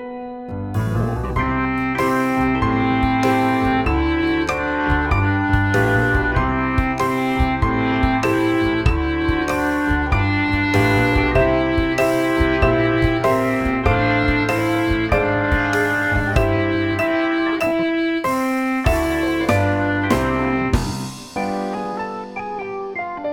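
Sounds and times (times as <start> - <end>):
C clarinet playing boogie: 0.7 - 23.3.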